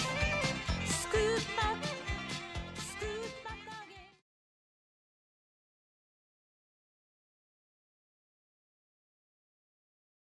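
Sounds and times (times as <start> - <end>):
square dance vocal: 0.0 - 4.2.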